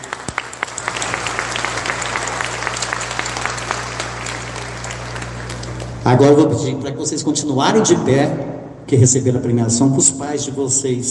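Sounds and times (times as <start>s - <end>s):
audience applause: 0.0s - 6.1s
speech: 6.1s - 11.1s.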